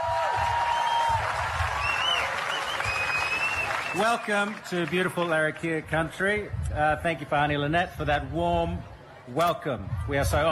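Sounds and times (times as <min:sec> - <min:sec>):
audience applause for the Red Flag dancers in Darwin: 0:00.0 - 0:06.1
speech: 0:04.0 - 0:10.5.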